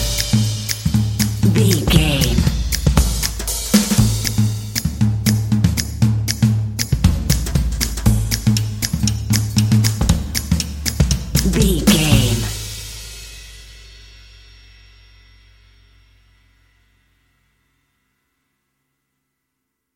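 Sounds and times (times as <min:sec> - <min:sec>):
jazzy drum beat, drums only: 0:00.0 - 0:13.6.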